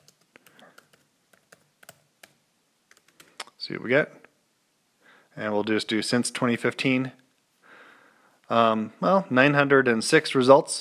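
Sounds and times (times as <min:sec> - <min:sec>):
typing on a computer keyboard: 0:00.0 - 0:03.4
speech: 0:03.7 - 0:04.2, 0:05.4 - 0:07.2, 0:08.5 - 0:10.7.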